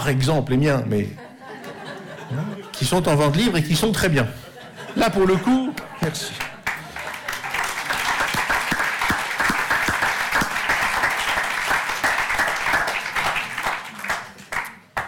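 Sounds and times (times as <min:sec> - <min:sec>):
speech: 0:00.0 - 0:01.2, 0:02.3 - 0:06.5
laughter: 0:01.2 - 0:03.3, 0:04.2 - 0:08.2
audience applause: 0:05.8 - 0:15.0.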